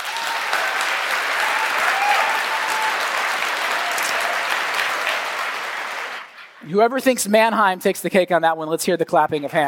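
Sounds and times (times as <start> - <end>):
audience clapping: 0.0 - 6.6
speech: 6.7 - 9.6.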